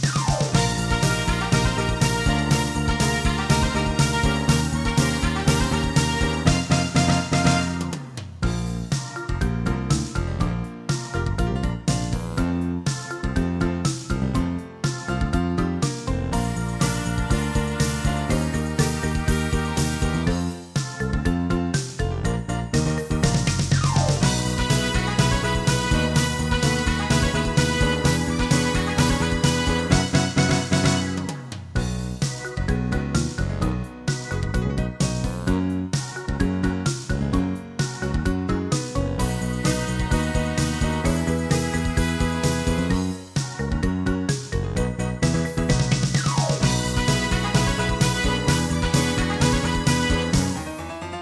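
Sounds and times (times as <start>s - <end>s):
karaoke backing track: 0.1s - 51.0s.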